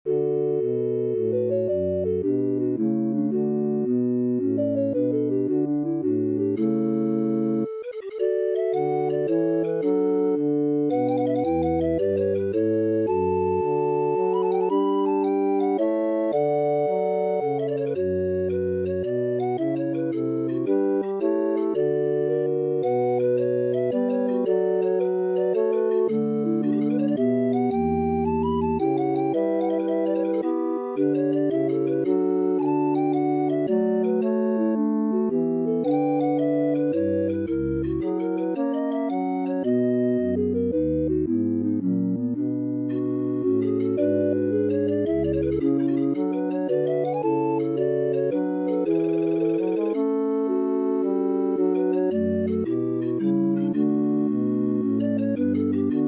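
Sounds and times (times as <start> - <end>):
arias for organ: 0.1 - 56.0.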